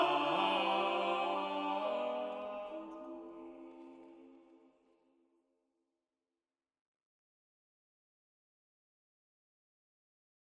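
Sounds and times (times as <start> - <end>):
SATB choir singing: 0.0 - 4.7.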